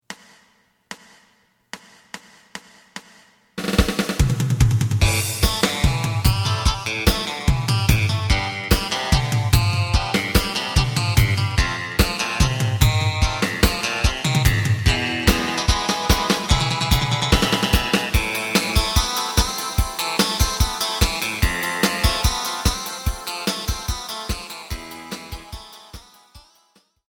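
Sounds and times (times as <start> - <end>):
bass: 4.3 - 22.8, 23.5 - 25.8.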